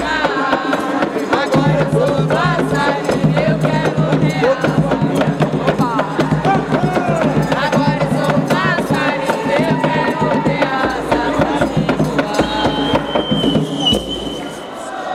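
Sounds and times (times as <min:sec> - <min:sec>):
batuque de umbigada drumming and singing in Piracicaba: 0:00.0 - 0:15.0.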